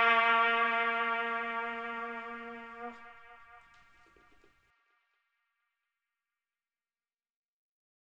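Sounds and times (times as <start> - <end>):
trumpet: 0.0 - 4.5.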